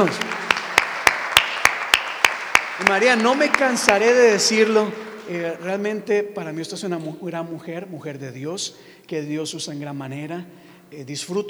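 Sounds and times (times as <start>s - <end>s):
speech: 0.0s - 0.3s, 2.8s - 11.4s
audience applause: 0.0s - 6.2s
laughter: 0.0s - 10.4s.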